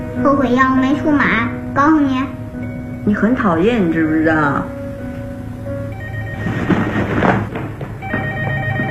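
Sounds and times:
speech: 0.2 - 2.4, 3.0 - 4.8
telephone ringing: 5.8 - 8.8.

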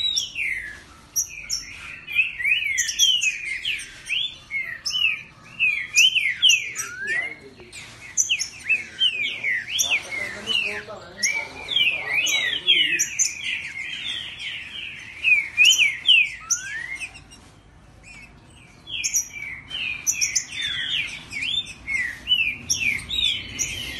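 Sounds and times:
Green-winged Saltator singing territorial whistles: 0.0 - 17.3, 18.1 - 23.9.

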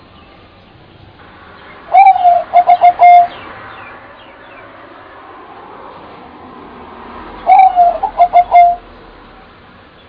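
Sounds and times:
bird call: 1.7 - 3.9, 7.4 - 8.9.

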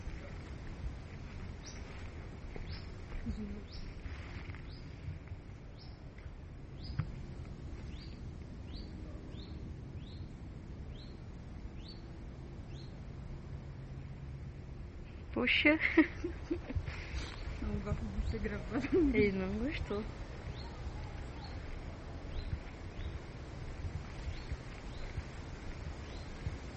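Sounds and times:
low rumble: 0.0 - 26.7
bird song: 1.5 - 7.2, 7.8 - 13.0, 17.0 - 26.7
speech: 3.3 - 4.0, 15.4 - 16.4, 17.9 - 20.3.

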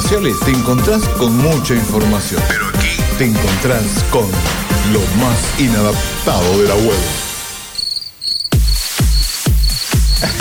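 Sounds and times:
speech: 0.1 - 7.2
crickets chirping: 7.6 - 10.3.

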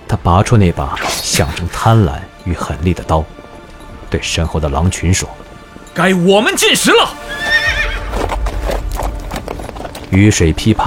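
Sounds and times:
speech: 0.1 - 3.5, 4.1 - 7.4, 10.1 - 10.8
horse whinnying: 7.3 - 8.4
horse hoof clops: 7.9 - 10.7.

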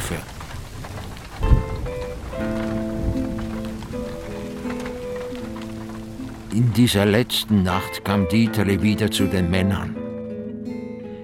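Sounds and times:
low rumble of thunder: 0.0 - 6.5
steady rain: 0.0 - 8.2
speech: 0.1 - 0.3, 6.6 - 10.0.

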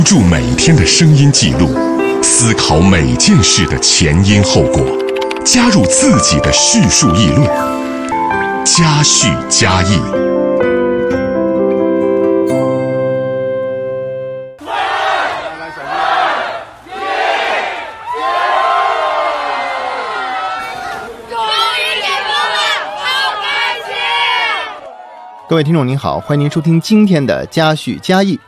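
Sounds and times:
speech: 0.0 - 7.9, 8.7 - 10.6, 25.5 - 28.4
music: 0.0 - 14.6
crowd cheering as lockdown lifted in Wangjing residential compound Beijing: 14.6 - 28.4.

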